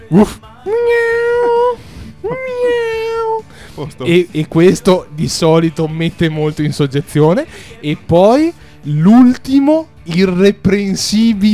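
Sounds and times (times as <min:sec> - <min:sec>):
person imitating a dog barking and howling: 0:00.0 - 0:04.2
speech: 0:00.1 - 0:01.2, 0:03.8 - 0:11.5.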